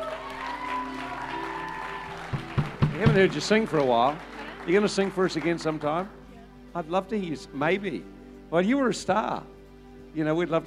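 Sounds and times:
audience applause: 0:00.0 - 0:06.1
speech: 0:03.0 - 0:06.2, 0:06.8 - 0:10.6.

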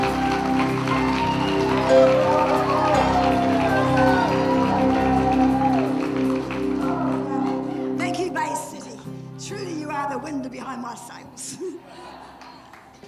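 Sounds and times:
audience applause: 0:00.0 - 0:08.5, 0:11.9 - 0:13.0.

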